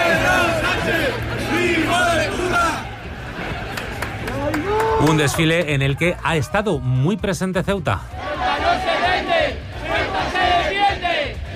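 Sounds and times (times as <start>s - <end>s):
crowd shouting and jeering at parade: 0.0s - 11.5s
speech: 5.1s - 8.3s.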